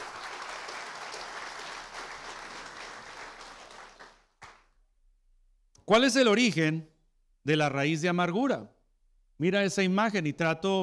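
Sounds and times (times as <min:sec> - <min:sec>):
audience applauding: 0:00.0 - 0:04.7
speech: 0:05.9 - 0:08.8, 0:09.4 - 0:10.8.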